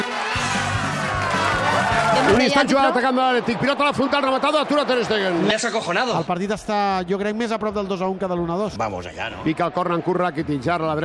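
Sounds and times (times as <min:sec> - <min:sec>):
stadium crowd applauding: 0:00.0 - 0:06.3
speech: 0:02.3 - 0:11.0.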